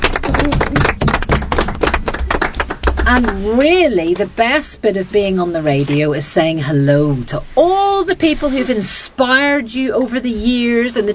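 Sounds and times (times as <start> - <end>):
round of applause: 0.0 - 3.4
speech: 3.1 - 11.1.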